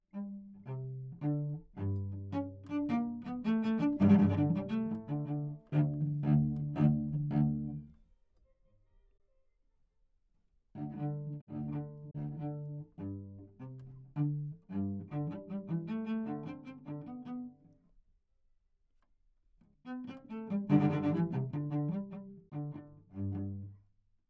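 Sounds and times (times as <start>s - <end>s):
string quartet minuet with cello: 0.1s - 8.0s, 10.8s - 17.8s, 19.8s - 23.8s.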